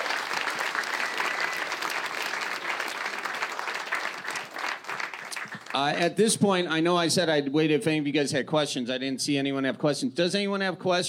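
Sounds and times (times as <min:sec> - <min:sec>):
audience clapping: 0:00.0 - 0:06.1
speech: 0:05.8 - 0:11.0.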